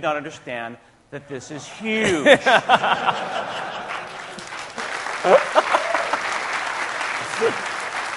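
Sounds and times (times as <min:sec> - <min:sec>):
speech: 0:00.0 - 0:03.9, 0:05.2 - 0:05.6, 0:07.4 - 0:08.1
laughter: 0:02.0 - 0:06.5
audience applause: 0:03.1 - 0:08.1.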